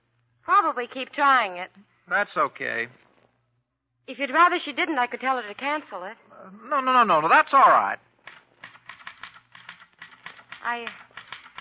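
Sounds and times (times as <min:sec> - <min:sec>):
speech: 0:00.7 - 0:03.0, 0:04.0 - 0:08.1, 0:10.6 - 0:11.0
typewriter typing: 0:08.2 - 0:11.5.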